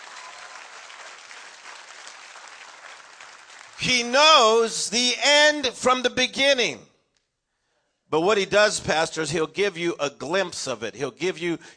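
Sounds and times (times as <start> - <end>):
audience clapping: 0.0 - 4.1
speech: 3.8 - 6.9, 8.1 - 11.7.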